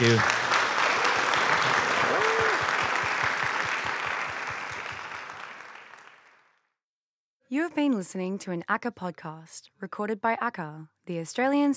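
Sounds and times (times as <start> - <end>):
speech: 0.0 - 0.4, 7.8 - 11.7
audience applause after a lecture: 0.0 - 6.6.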